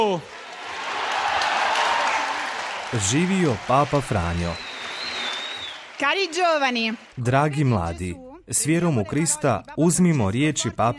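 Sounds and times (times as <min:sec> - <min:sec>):
speech: 0:00.0 - 0:00.4, 0:02.9 - 0:04.7, 0:06.0 - 0:10.9
thunderous applause greeting young people from the Vatican at a religious gathering: 0:00.0 - 0:07.3
crowd noise at a religious gathering: 0:00.0 - 0:07.9.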